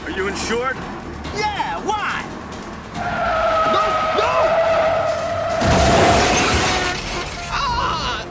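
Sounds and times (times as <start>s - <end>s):
speech: 0.2s - 2.4s
car door crunching against a bus as the car reverses: 3.0s - 7.9s.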